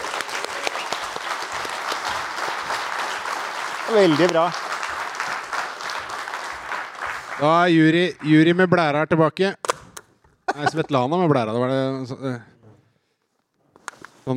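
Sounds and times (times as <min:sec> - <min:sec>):
audience applause: 0:00.0 - 0:08.6
speech: 0:03.9 - 0:04.6, 0:07.4 - 0:09.6, 0:10.6 - 0:12.5.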